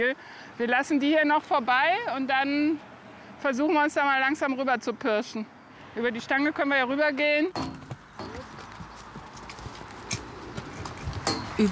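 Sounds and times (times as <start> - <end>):
speech: 0.0 - 7.7
horse hooves clip-clopping: 7.6 - 11.7.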